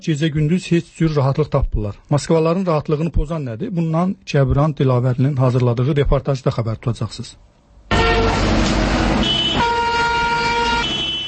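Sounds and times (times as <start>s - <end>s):
speech: 0.0s - 7.5s
car horns blaring in Moscow traffic: 7.9s - 11.2s.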